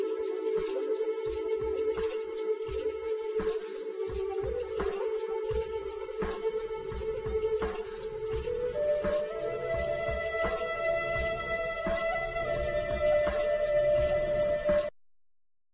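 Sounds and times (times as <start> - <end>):
flute: 0.0 - 14.9.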